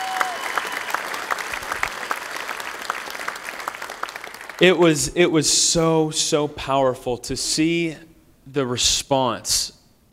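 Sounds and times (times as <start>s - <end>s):
audience clapping: 0.0s - 4.9s
speech: 4.6s - 9.8s.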